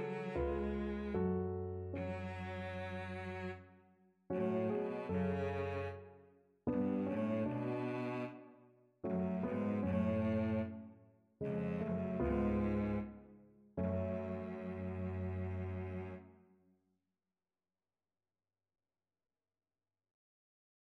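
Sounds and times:
cello: 0:00.0 - 0:16.3.

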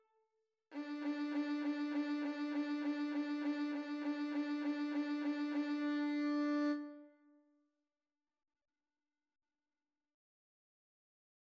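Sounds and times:
violin duet: 0:00.8 - 0:07.0.

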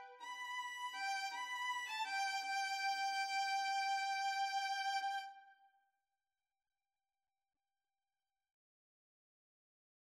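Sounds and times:
cello: 0:00.0 - 0:05.5
violin: 0:00.0 - 0:05.5.

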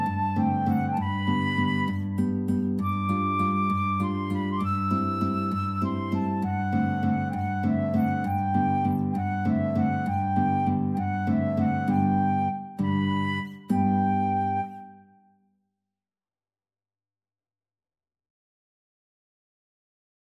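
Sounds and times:
guitar in a duet: 0:00.0 - 0:15.2
flute in a duet: 0:00.0 - 0:15.3.

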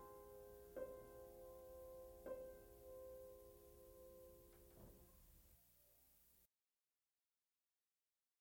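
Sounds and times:
piano etude: 0:00.0 - 0:05.0.

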